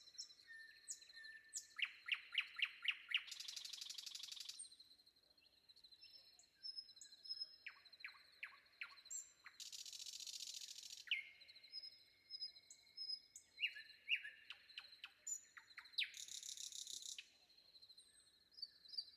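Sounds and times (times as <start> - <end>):
common nightingale song: 0.0 - 19.1.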